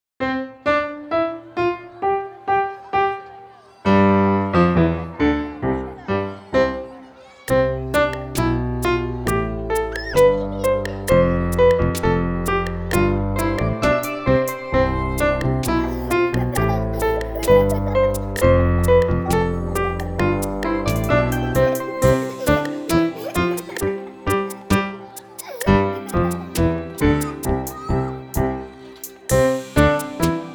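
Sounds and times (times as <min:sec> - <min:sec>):
laughter: 0:01.6 - 0:30.5
instrumental music: 0:07.4 - 0:30.5.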